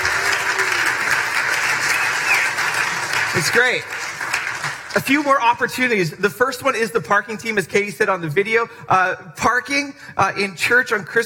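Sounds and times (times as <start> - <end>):
audience clapping: 0.0 - 5.7
speech: 3.4 - 4.0, 5.0 - 11.2.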